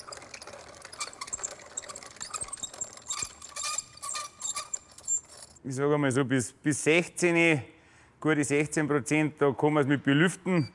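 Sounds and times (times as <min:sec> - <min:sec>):
small mill grinding wheat for a moisture test: 0:00.0 - 0:05.6
speech: 0:05.6 - 0:10.7.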